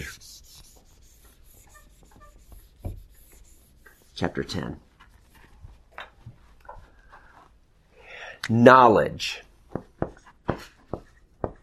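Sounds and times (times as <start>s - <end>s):
writing on a board: 0.0s - 4.4s, 9.7s - 11.6s
speech: 4.2s - 4.9s, 8.5s - 9.5s.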